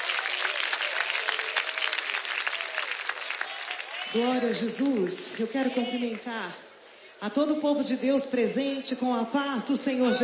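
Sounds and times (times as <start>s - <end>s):
audience applauding: 0.0s - 6.3s
speech: 4.1s - 10.2s.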